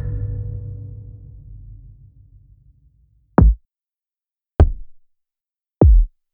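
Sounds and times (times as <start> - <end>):
kick drums: 3.4 - 3.7, 4.6 - 5.1, 5.8 - 6.2.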